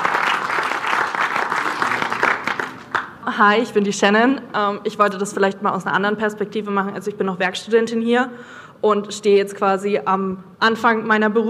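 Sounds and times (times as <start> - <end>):
audience applause after a talk at a company event: 0.0 - 3.2
speech: 3.4 - 11.4.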